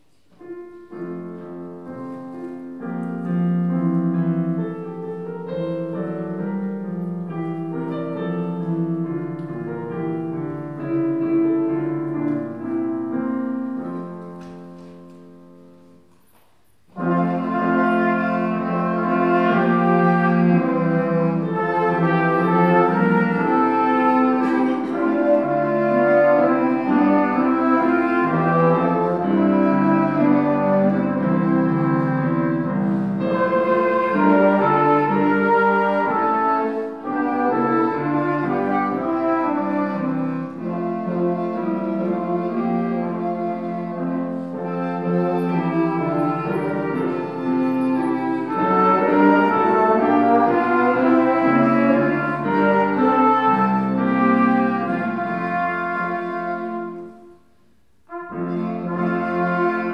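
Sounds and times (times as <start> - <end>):
instrumental hymn: 0.0 - 59.9.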